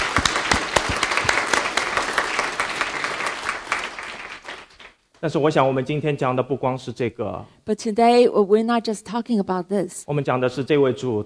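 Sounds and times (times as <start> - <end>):
audience applause: 0.0 - 5.0
speech: 5.2 - 11.2.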